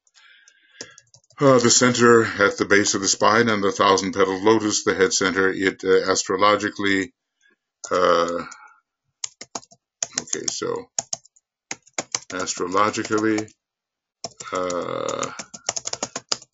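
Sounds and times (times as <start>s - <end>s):
typing on a computer keyboard: 0.0s - 1.7s, 7.8s - 8.6s, 9.2s - 13.5s, 14.2s - 16.5s
speech: 1.4s - 7.2s, 7.9s - 8.6s, 10.3s - 11.1s, 12.3s - 13.6s, 14.3s - 15.5s.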